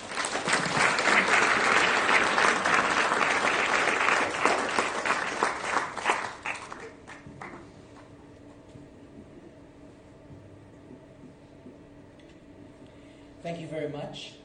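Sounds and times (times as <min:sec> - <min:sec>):
audience applause welcoming a speaker to an evening lecture: 0:00.0 - 0:07.7
speech: 0:14.1 - 0:14.4.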